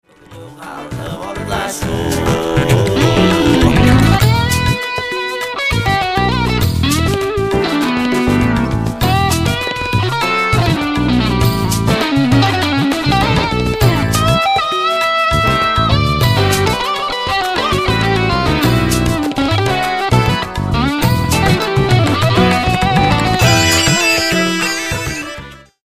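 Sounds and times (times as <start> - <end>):
electric guitar: 0.1 - 25.8.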